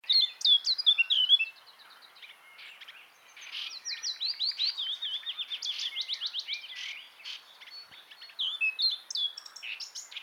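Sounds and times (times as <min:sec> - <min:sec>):
Eurasian blackcap song: 0:00.0 - 0:10.2.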